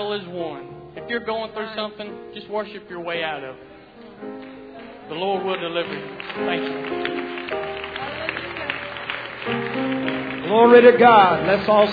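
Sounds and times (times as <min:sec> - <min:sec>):
speech: 0:00.0 - 0:04.3, 0:05.1 - 0:07.2, 0:09.4 - 0:11.9
audience applause: 0:04.3 - 0:11.9.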